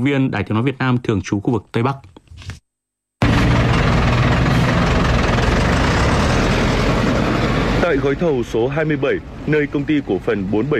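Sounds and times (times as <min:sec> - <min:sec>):
speech: 0:00.0 - 0:02.6, 0:07.9 - 0:10.7
excavators and bulldozers roaring at construction site in mountain forest: 0:03.2 - 0:10.7.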